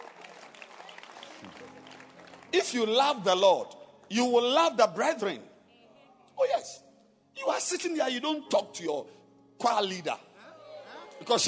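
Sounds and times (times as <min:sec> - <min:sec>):
audience clapping: 0:00.0 - 0:03.5
speech: 0:02.5 - 0:05.5, 0:07.5 - 0:10.3, 0:11.2 - 0:11.4.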